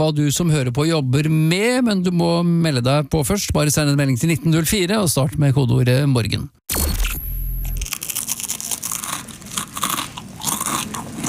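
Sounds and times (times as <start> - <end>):
speech: 0.0 - 6.8
crispbread being bitten and chewed: 7.8 - 11.2.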